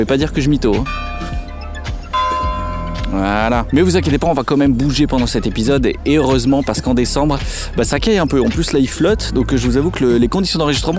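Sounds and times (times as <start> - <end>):
speech: 0.0 - 1.4, 3.1 - 10.9
basilica church bells ringing: 0.8 - 4.8.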